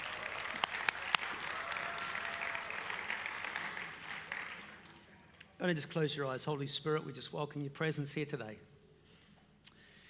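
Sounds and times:
church congregation applauding the worship team: 0:00.0 - 0:05.3
speech: 0:05.6 - 0:08.7.

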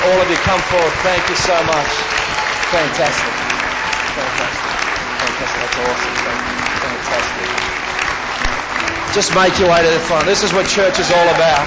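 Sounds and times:
people cheering: 0:00.0 - 0:11.6
people clapping: 0:00.0 - 0:11.6
speech: 0:00.1 - 0:03.5, 0:05.4 - 0:07.7, 0:08.5 - 0:11.6.

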